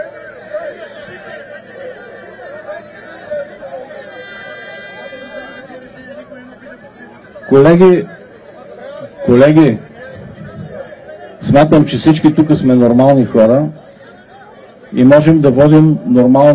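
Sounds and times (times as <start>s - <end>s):
audience heckling at meeting: 0.0s - 16.5s
speech: 7.5s - 8.2s, 9.3s - 9.9s, 11.5s - 13.8s, 14.9s - 16.5s.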